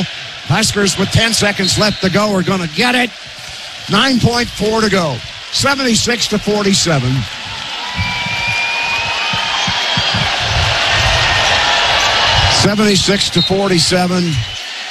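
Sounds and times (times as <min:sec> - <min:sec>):
commentator talking: 0:00.0 - 0:03.1, 0:03.9 - 0:07.3, 0:12.5 - 0:14.5
speech: 0:00.0 - 0:03.3, 0:03.9 - 0:07.4, 0:12.6 - 0:14.6
crowd roar at a Nebraska Huskers NCAA tournament game against Troy: 0:00.0 - 0:14.8
basketball dribbled on court: 0:08.0 - 0:12.2.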